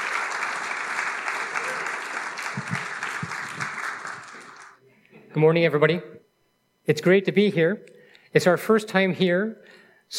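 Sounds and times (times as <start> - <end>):
audience applause: 0.0 - 4.8
speech: 5.4 - 6.2, 6.9 - 10.1.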